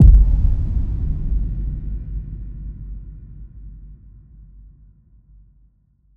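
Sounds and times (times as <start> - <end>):
impact: 0.0 - 3.0.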